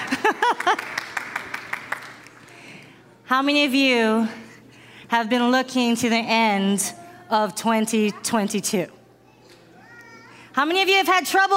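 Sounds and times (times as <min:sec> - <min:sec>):
audience round of applause: 0:00.0 - 0:02.7
speech: 0:00.7 - 0:01.0, 0:03.3 - 0:04.4, 0:05.1 - 0:09.0, 0:10.6 - 0:11.5.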